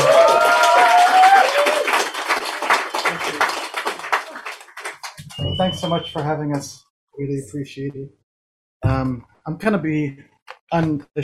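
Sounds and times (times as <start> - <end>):
audience applause: 0.0 - 6.4
speech: 5.8 - 8.2, 8.8 - 11.2.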